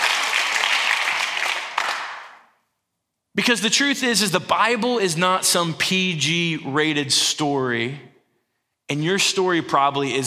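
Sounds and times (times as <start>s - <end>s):
audience clapping: 0.0s - 2.5s
speech: 3.4s - 8.1s, 8.9s - 10.2s.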